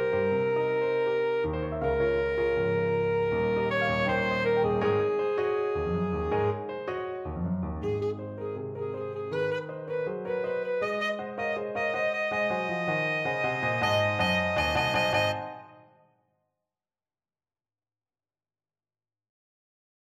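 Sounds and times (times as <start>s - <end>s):
alto saxophone: 0.0s - 7.1s, 7.7s - 15.9s.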